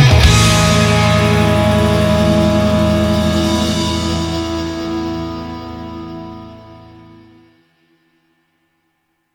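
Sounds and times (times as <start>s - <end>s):
party music intro: 0.0s - 7.4s.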